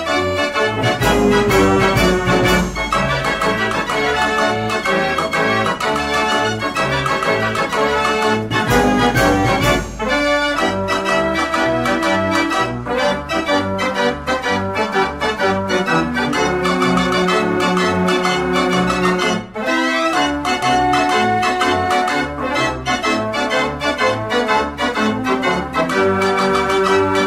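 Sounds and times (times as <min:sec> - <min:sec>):
105 key fairground organ playing: 0:00.0 - 0:27.2.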